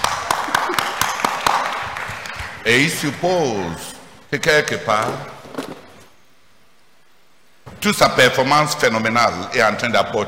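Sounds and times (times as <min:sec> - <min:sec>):
audience applause: 0:00.0 - 0:03.0
speech: 0:02.6 - 0:05.4, 0:07.8 - 0:10.2.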